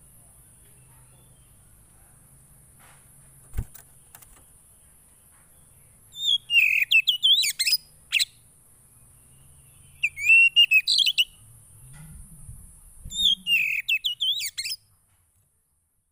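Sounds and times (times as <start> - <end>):
Oriental magpie-robin song: 6.1 - 8.4, 9.8 - 11.4, 13.1 - 14.8
faint low rumbling: 11.3 - 13.6.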